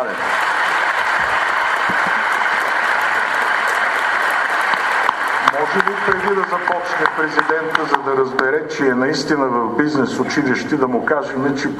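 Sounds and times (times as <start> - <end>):
applause from a large crowd: 0.0 - 8.4
speech: 5.6 - 11.7.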